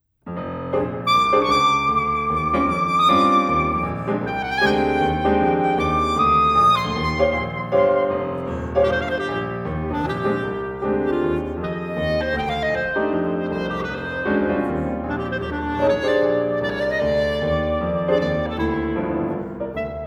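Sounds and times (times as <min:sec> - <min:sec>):
clarinet sonata: 0:00.7 - 0:20.0.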